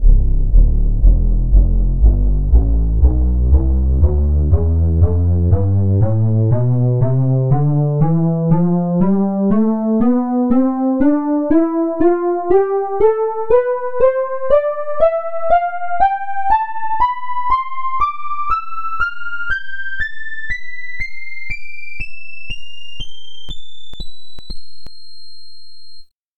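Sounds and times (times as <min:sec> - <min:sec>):
chiff lead synth playing a scale: 0:00.0 - 0:24.8.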